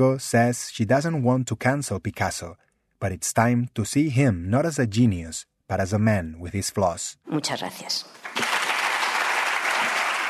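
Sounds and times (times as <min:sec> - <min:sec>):
speech: 0:00.0 - 0:08.4
large audience applauding after a speech on Picasso: 0:08.2 - 0:10.2.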